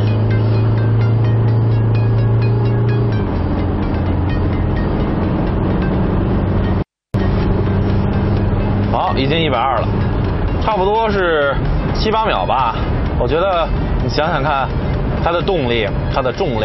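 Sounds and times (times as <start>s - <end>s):
Isuzu mu-X SUV engine accelerating hard in low gear at half pedal: 0.0s - 16.6s
speech: 10.6s - 16.6s.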